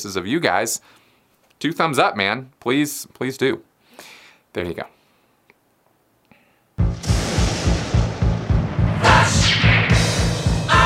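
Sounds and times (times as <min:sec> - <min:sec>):
speech: 0:00.0 - 0:01.0, 0:01.6 - 0:05.0
thunder and lightning sound effect: 0:06.9 - 0:10.7.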